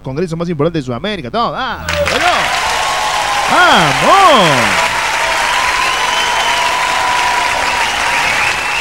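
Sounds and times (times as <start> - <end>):
speech: 0.0 - 2.8, 3.5 - 4.9
audience applause: 1.8 - 8.7.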